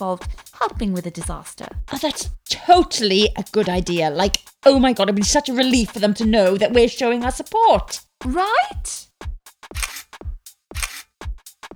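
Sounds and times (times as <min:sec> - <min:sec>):
speech: 0:00.0 - 0:09.1
camera shutter firing for a selfie: 0:09.8 - 0:10.1, 0:10.8 - 0:11.1.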